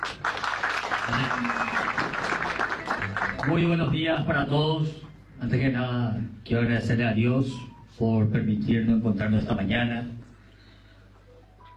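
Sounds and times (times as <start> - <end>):
audience applause: 0.0 - 3.8
speech: 1.1 - 2.2, 3.4 - 10.2.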